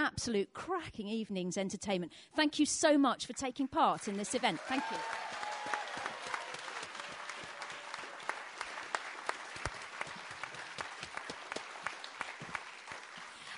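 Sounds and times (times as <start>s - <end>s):
speech: 0.1s - 5.4s
audience applause: 4.0s - 13.5s.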